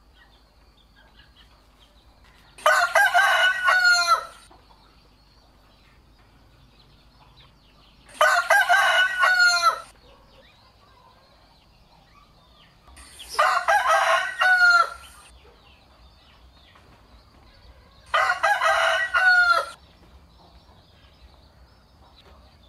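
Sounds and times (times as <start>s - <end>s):
rooster crowing: 2.6s - 4.5s, 8.1s - 10.0s, 13.3s - 15.3s, 17.8s - 19.8s.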